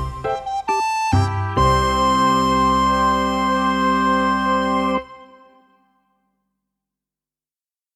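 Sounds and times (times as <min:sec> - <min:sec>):
comic cute cartoon recorder music: 0:00.0 - 0:05.7.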